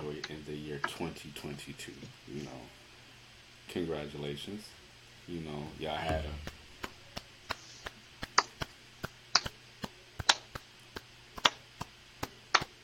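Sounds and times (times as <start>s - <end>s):
speech: 0.8s - 2.8s, 3.7s - 6.6s
sparse hand clapping: 6.4s - 12.8s.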